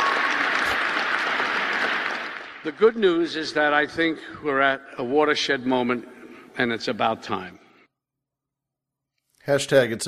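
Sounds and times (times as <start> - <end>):
audience applause: 0.0 - 3.5
speech: 2.6 - 7.6, 9.5 - 10.0.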